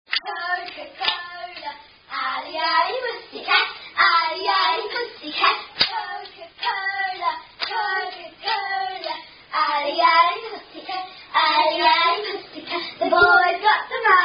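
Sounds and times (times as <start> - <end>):
children clapping hands: 0.1 - 1.7, 5.8 - 9.2
children chanting a playground rhyme: 0.2 - 14.2.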